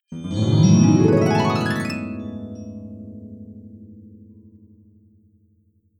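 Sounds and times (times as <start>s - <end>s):
magic sound effect: 0.1s - 2.6s.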